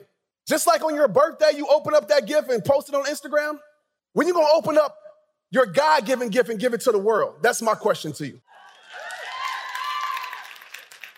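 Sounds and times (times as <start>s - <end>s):
speech: 0.5s - 8.5s
audience clapping: 8.6s - 11.1s.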